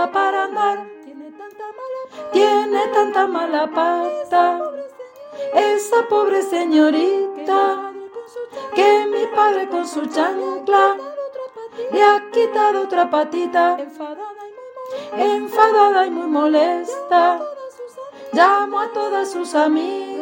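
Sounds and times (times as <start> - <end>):
contraltos singing: 0.0 - 20.2.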